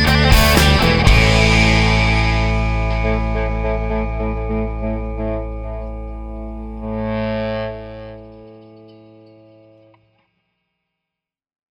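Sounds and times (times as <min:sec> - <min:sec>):
maple thinline Telecaster electric guitar: 0:00.0 - 0:10.2.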